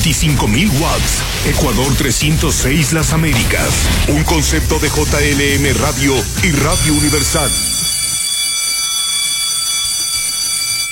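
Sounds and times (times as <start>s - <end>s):
speech: 0.0s - 7.7s
low rumbling hum: 0.2s - 8.0s
electric bell ringing: 6.6s - 10.9s.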